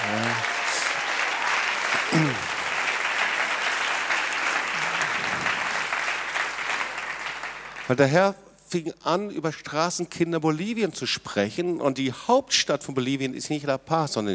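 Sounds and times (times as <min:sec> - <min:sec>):
audience applause: 0:00.0 - 0:08.1
speech: 0:07.9 - 0:14.3.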